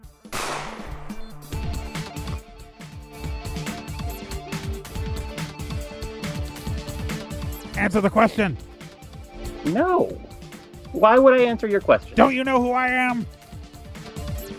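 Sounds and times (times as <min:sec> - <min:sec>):
rapid rhythmic sounds: 0:00.0 - 0:14.5
gunshot fired at a lean-to in a video game: 0:00.3 - 0:01.8
speech: 0:07.8 - 0:08.7, 0:09.6 - 0:10.3, 0:10.9 - 0:13.4.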